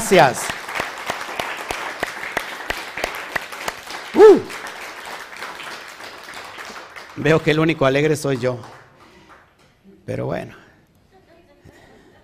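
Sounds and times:
audience applause: 0.0s - 9.6s
speech: 0.1s - 0.5s, 4.2s - 4.6s, 7.2s - 8.8s, 10.1s - 10.6s.

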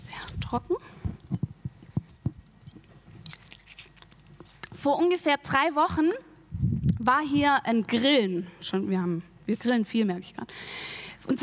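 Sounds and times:
speech: 0.5s - 1.0s, 4.8s - 6.3s, 7.0s - 11.4s
person sipping water: 1.1s - 4.7s.

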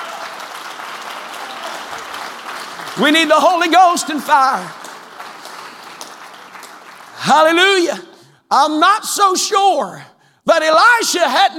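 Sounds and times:
audience clapping: 0.0s - 8.0s
speech: 3.0s - 4.8s, 7.3s - 11.5s.

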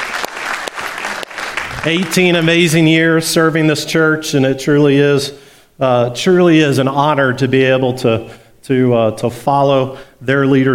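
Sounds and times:
audience applause: 0.0s - 2.3s
speech: 1.8s - 10.7s.

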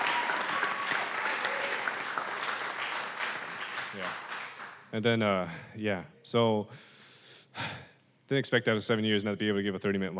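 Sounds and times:
audience clapping: 0.0s - 4.9s
speech: 4.0s - 4.3s, 4.9s - 6.9s, 8.3s - 10.1s.

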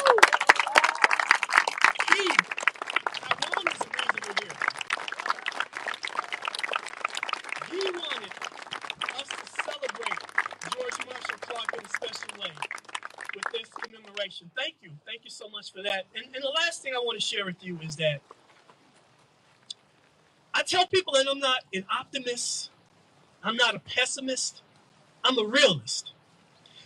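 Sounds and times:
round of applause: 0.0s - 14.4s
speech: 14.3s - 18.3s, 20.7s - 22.7s, 23.4s - 24.6s, 25.3s - 26.1s.

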